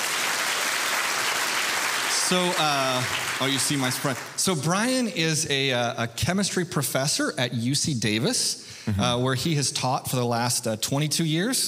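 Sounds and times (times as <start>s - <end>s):
audience clapping to welcome a guest speaker at a faith-and-science talk: 0.0s - 4.6s
speech: 2.3s - 11.6s.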